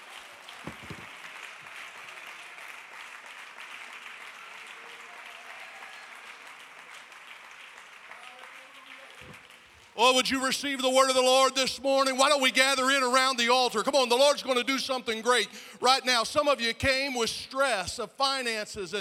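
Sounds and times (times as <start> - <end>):
audience clapping hands: 0.0 - 10.8
speech: 10.0 - 18.9.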